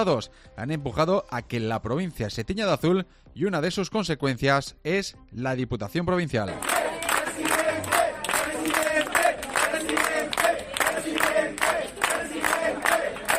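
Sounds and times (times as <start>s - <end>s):
speech: 0.0s - 6.8s
crowd shouting at provincial headquarters: 6.5s - 13.3s.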